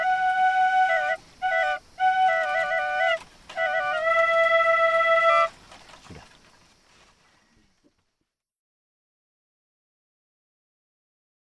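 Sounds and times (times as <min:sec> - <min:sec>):
flute double: 0:00.0 - 0:05.7.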